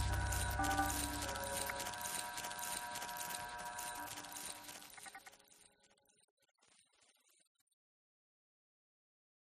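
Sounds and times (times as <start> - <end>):
tones: 0.0 - 2.8
electric zaps: 0.0 - 6.1.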